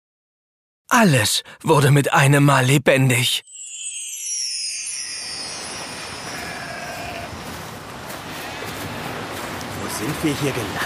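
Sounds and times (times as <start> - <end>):
speech: 0.9 - 3.5, 10.0 - 10.8
rushing wind-like hiss: 3.8 - 10.8
sheep bleating: 6.3 - 7.4.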